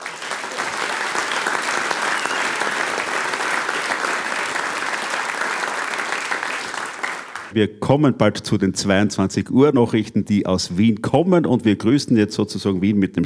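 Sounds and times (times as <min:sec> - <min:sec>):
audience applause: 0:00.0 - 0:07.5
speech: 0:07.6 - 0:13.2.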